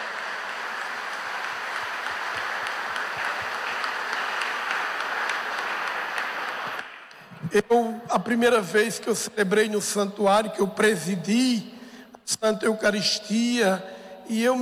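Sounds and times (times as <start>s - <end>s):
audience applause: 0.0s - 7.5s
speech: 7.5s - 11.7s, 12.3s - 14.6s.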